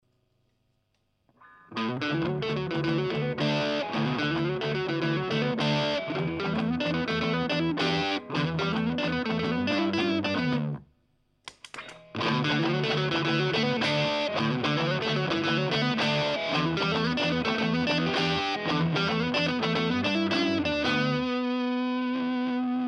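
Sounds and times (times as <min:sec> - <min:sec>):
distorted guitar picking: 0:01.4 - 0:10.8, 0:11.8 - 0:22.8.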